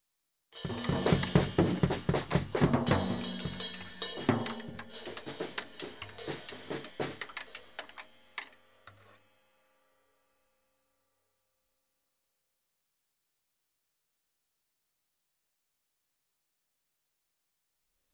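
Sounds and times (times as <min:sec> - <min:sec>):
drum kit played casually: 0:00.6 - 0:08.6.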